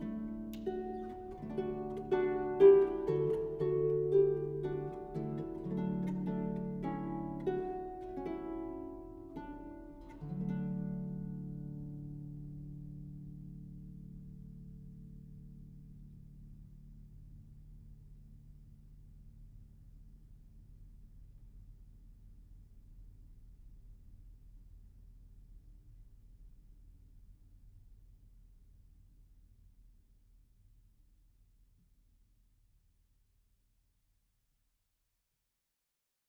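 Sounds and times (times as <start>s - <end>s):
harp playing: 0.0s - 12.4s.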